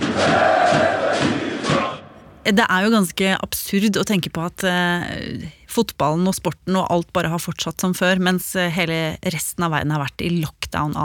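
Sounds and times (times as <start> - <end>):
stadium crowd of football fans roaring and chanting: 0.0 - 2.4
speech: 2.4 - 11.0.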